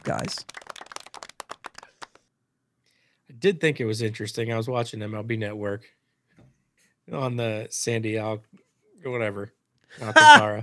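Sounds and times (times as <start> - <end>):
hand clapping: 0.0 - 2.3
speech: 0.1 - 0.6, 3.4 - 6.0, 7.1 - 10.6.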